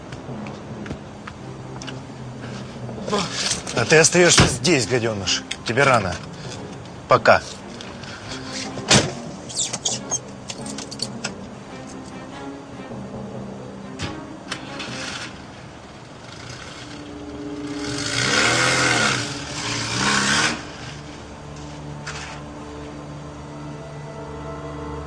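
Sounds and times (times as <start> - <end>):
speech: 3.1 - 6.3, 7.1 - 7.6
car engine starting and driving off: 14.1 - 21.3.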